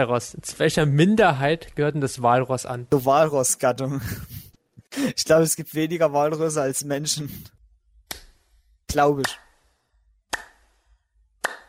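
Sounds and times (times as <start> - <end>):
speech: 0.0 - 4.3, 5.0 - 7.6, 8.9 - 9.4
laughter: 3.9 - 5.2
hand clapping: 8.1 - 9.6, 10.3 - 10.8, 11.4 - 11.6.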